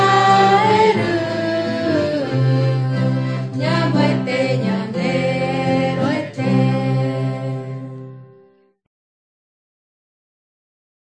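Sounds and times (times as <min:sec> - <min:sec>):
Guarani Mbya songs: 0:00.0 - 0:07.9.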